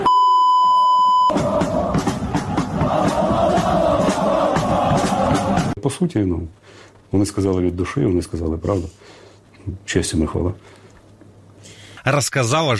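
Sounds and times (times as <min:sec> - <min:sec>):
high electronic bleep: 0:00.1 - 0:01.3
soldiers chanting in unison: 0:01.3 - 0:05.8
speech: 0:05.9 - 0:10.9, 0:12.1 - 0:12.7.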